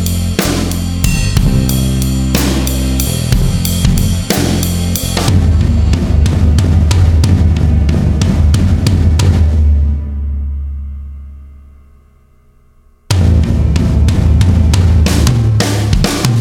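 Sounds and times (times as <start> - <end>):
backing bass drums: 0.0 - 11.0, 13.1 - 16.3.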